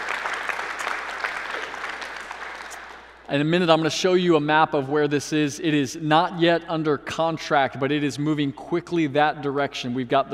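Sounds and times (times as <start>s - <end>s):
crowd clapping: 0.0s - 3.3s
speech: 3.3s - 10.3s.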